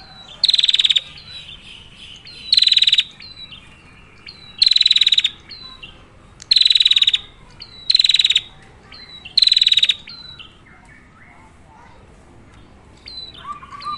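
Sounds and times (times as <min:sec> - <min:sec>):
prinia buzzy high-pitched rattling calls: 0:00.2 - 0:05.8, 0:06.5 - 0:08.6, 0:09.3 - 0:10.4.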